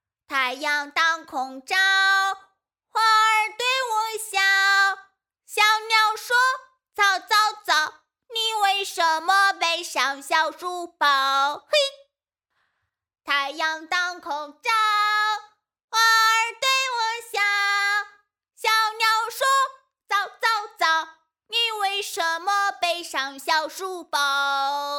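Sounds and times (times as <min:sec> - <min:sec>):
boy singing a going-to-school song: 0:00.3 - 0:12.0, 0:13.3 - 0:24.9.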